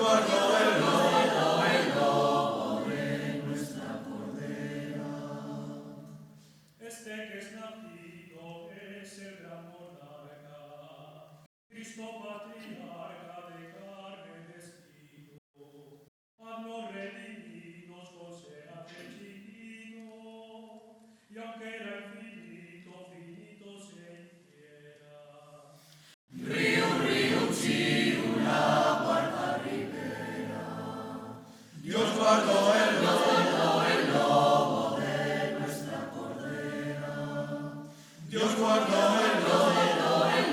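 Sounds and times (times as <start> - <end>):
polyphonic choir singing: 0.0 - 6.4, 26.3 - 40.5.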